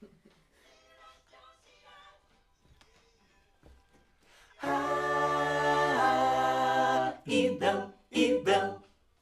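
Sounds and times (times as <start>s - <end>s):
backing vocals on AKG microphone: 4.6s - 8.8s.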